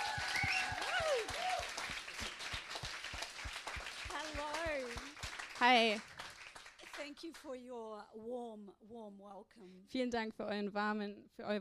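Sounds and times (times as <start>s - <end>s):
audience applauding to welcome a speaker: 0.0s - 7.4s
speech: 5.6s - 6.1s, 7.1s - 11.5s.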